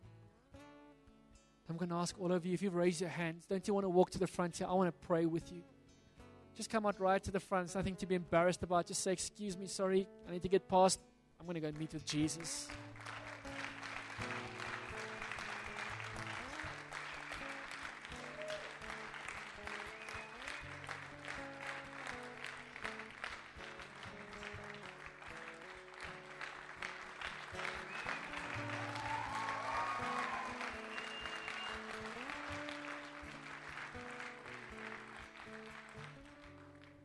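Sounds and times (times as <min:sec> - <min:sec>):
speech: 0:01.7 - 0:05.7, 0:06.6 - 0:12.8
audience applause: 0:12.4 - 0:37.0.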